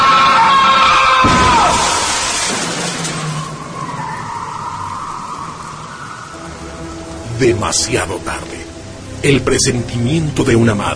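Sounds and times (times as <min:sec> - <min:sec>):
speeding car skidding: 0:00.0 - 0:06.5
speech: 0:07.4 - 0:10.9.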